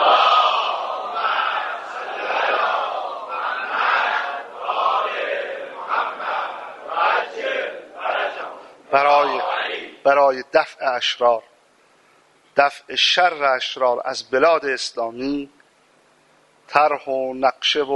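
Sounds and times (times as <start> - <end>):
crowd reciting salawat in unison: 0.0 - 10.0
speech: 10.0 - 11.5, 12.6 - 15.6, 16.7 - 17.9.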